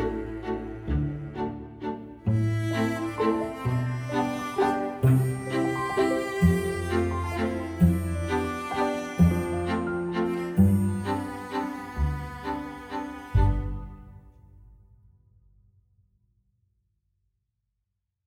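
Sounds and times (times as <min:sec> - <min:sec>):
waltz music: 0:00.0 - 0:14.2.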